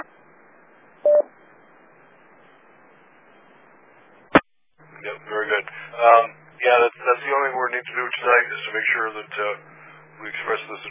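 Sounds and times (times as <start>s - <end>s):
radio hiss: 0.0s - 10.8s
autopatch DTMF touch-tone beep: 1.0s - 1.3s
speech: 5.0s - 10.8s.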